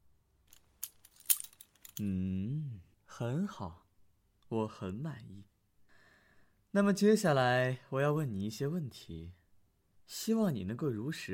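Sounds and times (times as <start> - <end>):
handcuffs clinking and rattling: 0.5 - 2.1
speech: 2.0 - 2.5, 3.2 - 3.8, 4.5 - 5.5, 6.7 - 9.4, 10.1 - 11.3.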